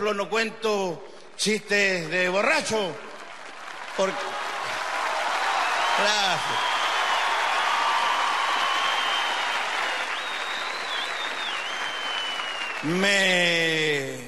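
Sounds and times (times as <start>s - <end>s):
speech: 0.0s - 3.1s, 4.0s - 4.3s, 6.0s - 6.7s, 12.8s - 14.2s
audience applause: 3.1s - 13.9s.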